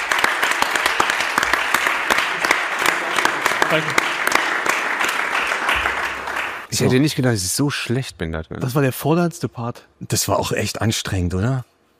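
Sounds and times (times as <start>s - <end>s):
audience applause: 0.0s - 6.9s
speech: 3.7s - 4.1s, 6.7s - 11.7s.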